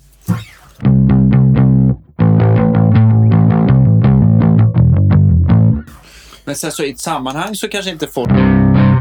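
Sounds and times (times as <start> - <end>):
distorted, overdriven electric guitar playing picked notes and chords: 0.3 - 6.0, 8.3 - 9.0
speech: 6.5 - 8.6.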